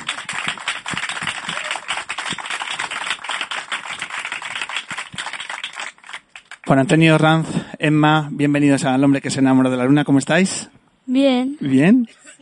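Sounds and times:
crowd applause: 0.0s - 6.8s
speech: 6.7s - 12.2s.

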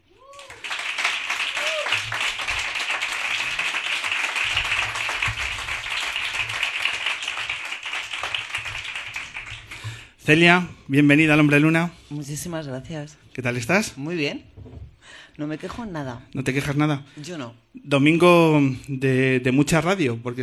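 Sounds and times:
studio audience applause greeting a guest on a Cadena SER radio show: 0.0s - 10.7s
speech: 10.3s - 14.5s, 15.4s - 20.4s.

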